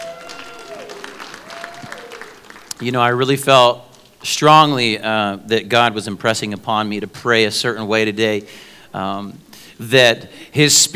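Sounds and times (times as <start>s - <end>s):
church audience clapping for the young people: 0.0s - 3.0s
speech: 2.8s - 10.9s.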